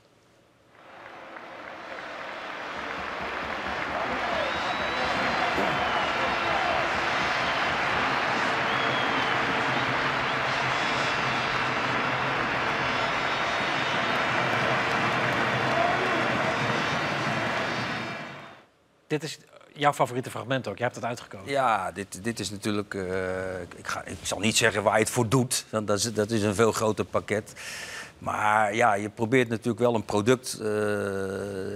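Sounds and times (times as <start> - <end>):
football stadium crowd applause at Santiago Bernabeu: 0.7 - 18.6
speech: 19.1 - 31.7.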